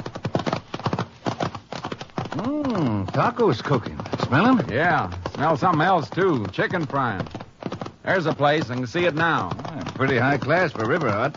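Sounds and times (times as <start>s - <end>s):
horse hooves clip-clopping: 0.0s - 11.3s
speech: 2.4s - 7.4s, 8.0s - 11.3s.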